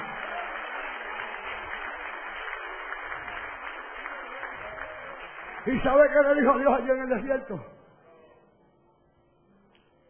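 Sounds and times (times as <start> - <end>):
audience applause: 0.0 - 7.2
speech: 5.6 - 7.8.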